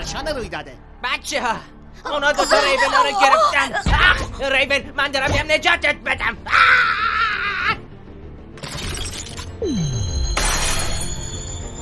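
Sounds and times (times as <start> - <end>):
speech: 0.1 - 7.2, 9.6 - 10.1
glass shattering in a cartoon scene: 10.3 - 11.6.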